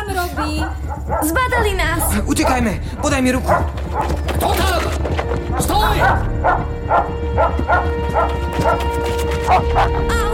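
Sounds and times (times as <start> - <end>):
dog barking and growling: 0.4 - 1.4, 3.4 - 4.6, 5.5 - 10.1
speech: 0.4 - 10.3.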